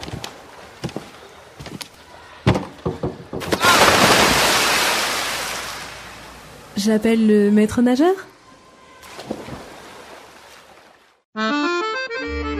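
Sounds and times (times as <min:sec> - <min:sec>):
sharp knocks from a high diving board: 0:02.5 - 0:03.6
splash into the deep end of a swimming pool: 0:03.4 - 0:06.4, 0:09.0 - 0:11.2
speech: 0:06.8 - 0:08.3.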